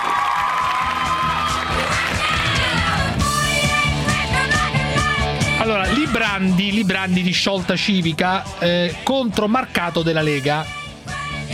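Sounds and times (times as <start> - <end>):
studio audience applauding and cheering: 0.0 - 4.6
rhythmic pulsing beat: 0.9 - 11.5
speech: 6.2 - 10.8.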